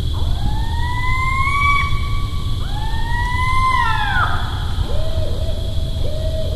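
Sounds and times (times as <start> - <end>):
barred owl hooting: 0.2 - 6.5.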